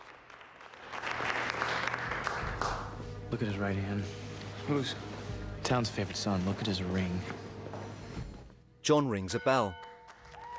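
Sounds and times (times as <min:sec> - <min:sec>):
applause: 0:00.0 - 0:03.0, 0:09.7 - 0:10.5
speech: 0:03.3 - 0:05.1, 0:05.7 - 0:07.4, 0:08.8 - 0:09.8.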